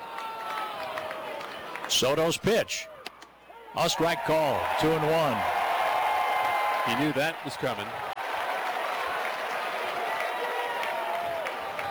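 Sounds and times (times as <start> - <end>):
piped-in fake crowd applause: 0.0 - 2.4, 3.8 - 11.8
speech: 1.9 - 2.9, 3.7 - 5.6, 6.8 - 8.1.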